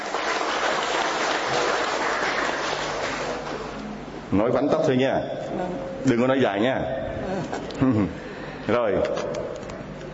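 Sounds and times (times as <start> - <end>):
crowd applause: 0.0 - 3.7
speech: 4.3 - 9.6.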